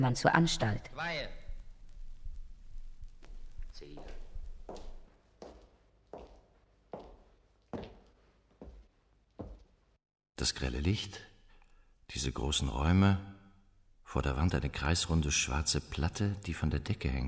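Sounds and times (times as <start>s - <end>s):
speech: 0.0s - 1.4s, 10.4s - 11.3s, 12.1s - 13.3s, 14.1s - 17.2s
soft shuffling: 1.8s - 10.0s
footsteps on wooden floor: 3.1s - 10.0s.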